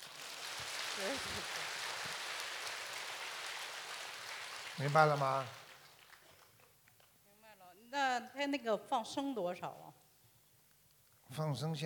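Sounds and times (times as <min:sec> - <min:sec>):
audience applause: 0:00.0 - 0:06.5
speech: 0:01.0 - 0:01.7, 0:04.8 - 0:05.6, 0:07.9 - 0:09.9, 0:11.3 - 0:11.8.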